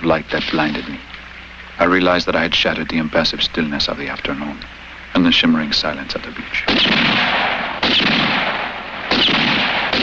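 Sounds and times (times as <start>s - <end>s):
speech: 0.0s - 1.2s, 1.8s - 8.6s
gunshots: 6.7s - 10.0s.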